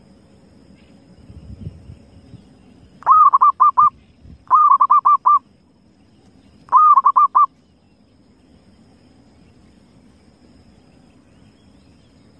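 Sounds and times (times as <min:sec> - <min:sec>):
Zebra dove cooing: 0:03.0 - 0:03.9, 0:04.5 - 0:05.4, 0:06.7 - 0:07.5.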